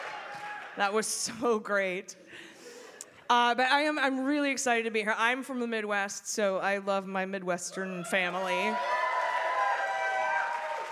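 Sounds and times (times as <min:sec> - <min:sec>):
audience cheering: 0:00.0 - 0:00.8, 0:08.3 - 0:10.8
large audience clapping: 0:00.0 - 0:00.8, 0:08.8 - 0:10.8
speech: 0:00.8 - 0:02.5, 0:03.3 - 0:09.0.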